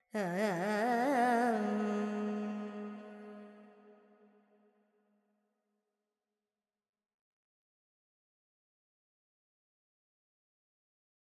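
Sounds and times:
Carnatic female vocal alaps in Dorian mode: 0.0s - 3.9s.

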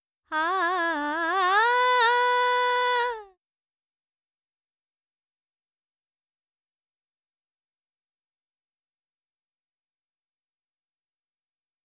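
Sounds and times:
dry female vocals: 0.3s - 3.4s.

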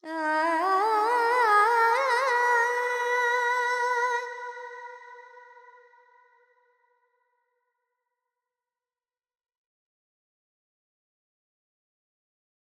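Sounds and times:
Carnatic woman singing alaps in Phrygian mode: 0.0s - 5.6s.

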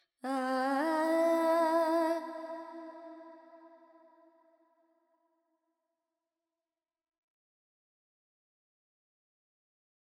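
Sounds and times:
Carnatic female singer singing alap: 0.2s - 3.2s.

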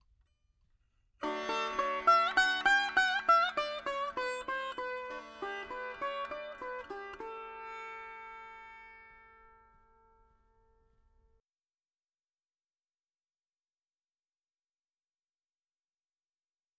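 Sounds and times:
dry veena melody: 1.2s - 11.0s.

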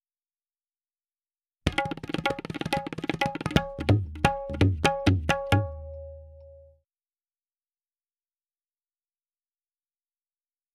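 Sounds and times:
tabla rhythm in C: 1.7s - 6.8s.

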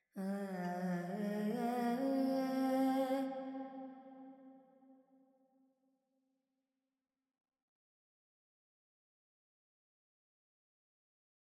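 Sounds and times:
woman singing Carnatic pentatonic alap in G: 0.2s - 3.7s.

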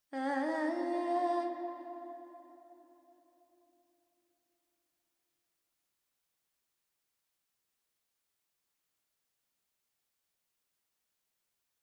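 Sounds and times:
woman singing Carnatic pentatonic alap in G: 0.2s - 2.0s.

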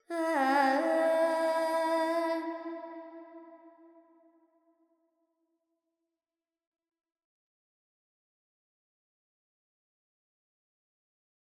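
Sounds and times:
Carnatic female alap in raga Panthuvarali with reverb: 0.0s - 2.8s.

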